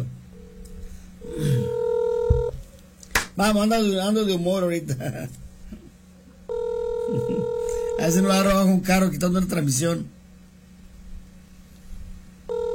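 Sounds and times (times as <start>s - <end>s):
telephone ringing on outgoing call: 1.2s - 2.6s, 6.5s - 8.2s, 12.5s - 12.7s
speech: 3.4s - 5.4s, 8.0s - 10.2s.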